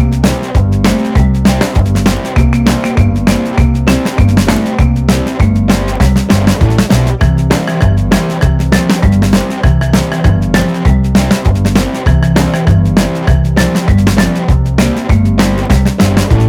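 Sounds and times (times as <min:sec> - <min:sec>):
one-chord blues at 198 bpm: 0:00.0 - 0:16.4.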